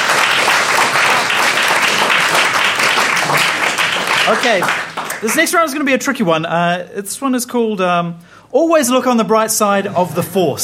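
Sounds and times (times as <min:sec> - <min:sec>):
audience applause: 0:00.0 - 0:05.6
speech: 0:04.3 - 0:10.6.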